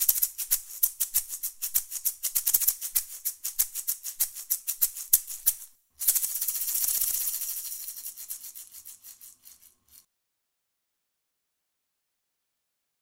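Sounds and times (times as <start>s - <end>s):
maracas being shaken: 0.0s - 10.1s.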